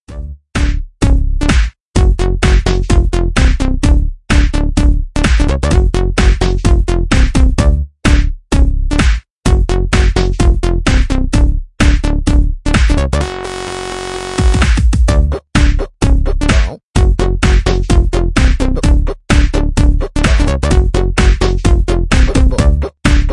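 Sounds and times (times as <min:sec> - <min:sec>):
electro mix: 0:00.1 - 0:23.3.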